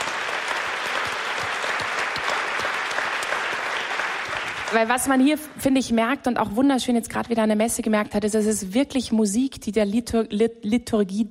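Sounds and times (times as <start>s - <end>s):
clapping: 0.0s - 5.1s
speech: 4.7s - 11.2s.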